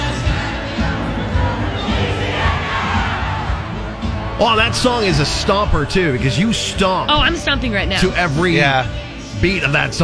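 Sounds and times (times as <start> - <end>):
huge stadium crowd roaring and shouting: 0.0 - 6.6
speech: 4.4 - 10.0.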